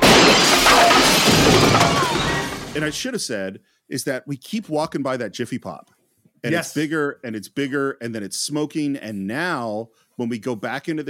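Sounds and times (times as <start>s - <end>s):
chair smashing through glass patio door: 0.0s - 3.0s
speech: 2.8s - 11.0s.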